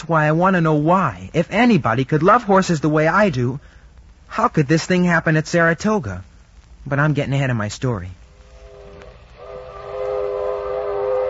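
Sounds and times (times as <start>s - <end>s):
speech: 0.1s - 8.2s
train horn sounding a sustained chord: 8.6s - 11.2s.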